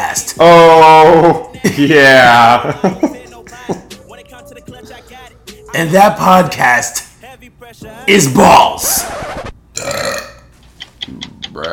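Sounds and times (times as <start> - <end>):
speech: 0.2 - 3.8, 4.5 - 10.2, 11.1 - 11.7
loud raspy burp: 9.8 - 10.5.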